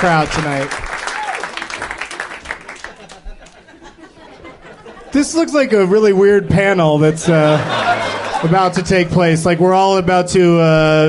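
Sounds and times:
speech: 0:00.0 - 0:00.8, 0:05.1 - 0:07.8, 0:08.4 - 0:11.0
audience applauding: 0:00.0 - 0:03.7
audience yelling: 0:01.1 - 0:01.5
laughter: 0:02.6 - 0:05.7, 0:07.0 - 0:09.4.

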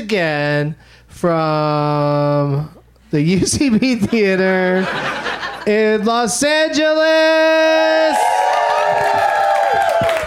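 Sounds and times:
speech: 0:00.0 - 0:08.3
laughter: 0:03.6 - 0:06.0
crowd cheering: 0:07.3 - 0:10.2
crowd applauding: 0:08.1 - 0:10.2.

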